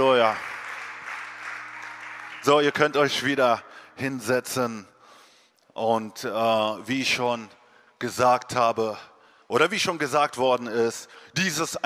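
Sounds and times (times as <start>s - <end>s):
crowd applauding: 0.0s - 3.3s
speech: 0.3s - 0.5s, 2.4s - 4.9s, 5.8s - 11.8s.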